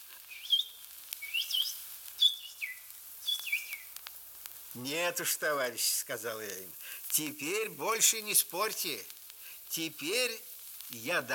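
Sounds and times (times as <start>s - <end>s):
small birds singing: 0.2s - 4.0s
speech: 4.8s - 11.3s.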